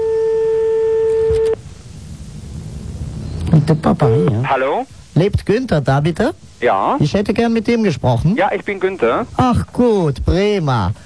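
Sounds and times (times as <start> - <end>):
steady telephone tone while dialing a number in Paris: 0.0 - 1.6, 4.0 - 4.4
low hiss: 0.0 - 11.0
speech: 3.7 - 11.0.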